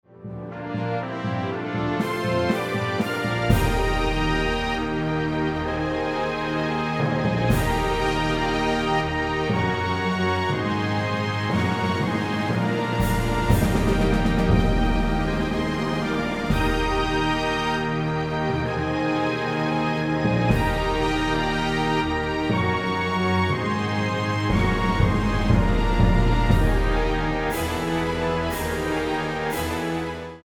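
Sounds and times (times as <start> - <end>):
fanfare: 0.1 - 30.4.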